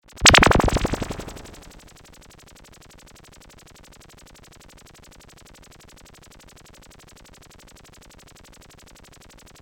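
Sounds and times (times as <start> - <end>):
flash laser gun: 0.2 - 1.7.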